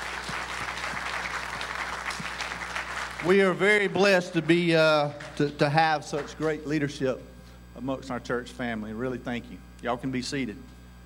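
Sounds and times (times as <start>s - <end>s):
audience applause: 0.0s - 6.4s
speech: 3.2s - 10.7s.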